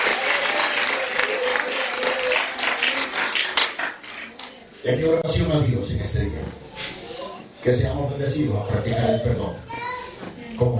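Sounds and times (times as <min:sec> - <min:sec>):
audience applause: 0:00.0 - 0:04.4
speech: 0:04.8 - 0:06.6, 0:07.6 - 0:09.8, 0:10.6 - 0:10.7.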